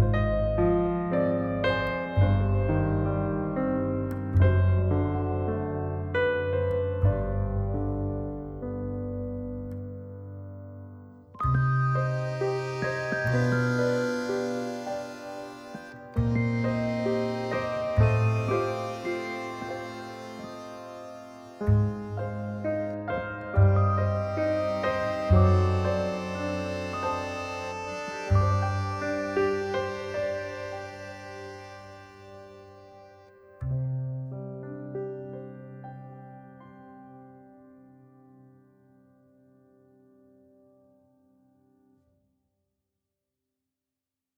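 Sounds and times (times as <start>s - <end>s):
melancholic music: 0.0s - 10.2s, 11.4s - 33.7s.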